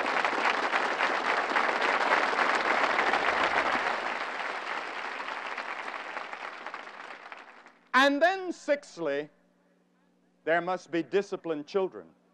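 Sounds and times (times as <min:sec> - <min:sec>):
crowd applauding: 0:00.0 - 0:07.9
speech: 0:08.0 - 0:09.4, 0:10.4 - 0:12.2.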